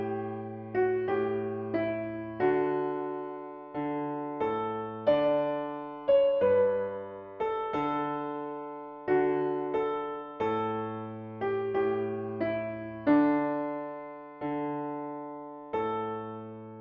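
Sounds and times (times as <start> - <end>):
piano piece: 0.0 - 16.7.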